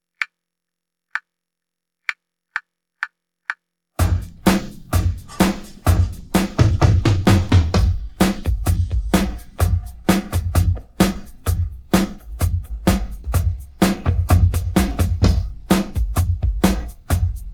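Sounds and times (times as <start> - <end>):
drum pattern: 4.0 - 17.5.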